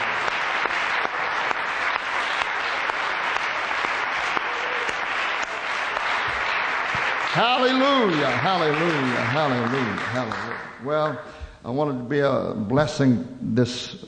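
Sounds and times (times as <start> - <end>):
audience clapping in praise: 0.0 - 11.2
speech: 7.4 - 14.0.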